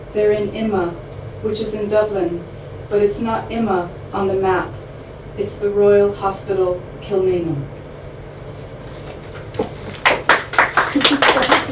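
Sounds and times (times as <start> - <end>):
speech: 0.1 - 4.8, 5.4 - 7.8
audience clapping: 9.4 - 11.6.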